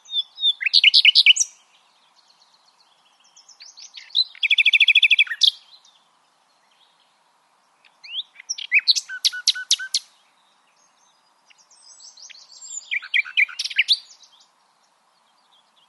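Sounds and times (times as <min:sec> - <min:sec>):
common nightingale singing: 0:00.0 - 0:15.8.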